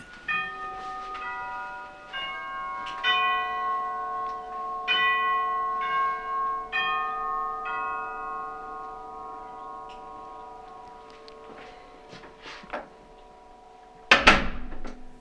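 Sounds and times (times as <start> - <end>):
doorbell ringing: 0.0 - 15.1.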